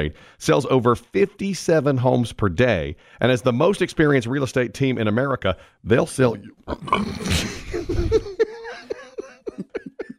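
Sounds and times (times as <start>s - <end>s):
speech: 0.0s - 8.3s
pukey burp: 6.5s - 7.7s
laughter: 7.4s - 10.1s.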